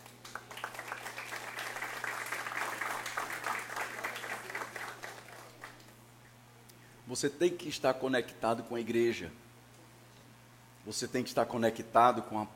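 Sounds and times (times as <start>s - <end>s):
audience applause: 0.0s - 5.8s
low constant hum: 0.0s - 12.5s
speech: 7.1s - 9.4s, 10.9s - 12.5s.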